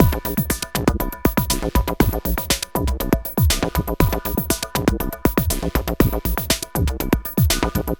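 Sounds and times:
processed percussion: 0.0s - 7.9s.

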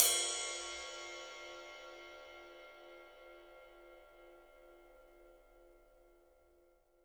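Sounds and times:
ride cymbal, 3D drums: 0.0s - 2.5s.

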